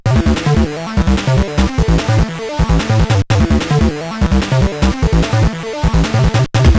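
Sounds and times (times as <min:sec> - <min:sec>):
MOS 6581R2 SID chip music: 0:00.2 - 0:06.7.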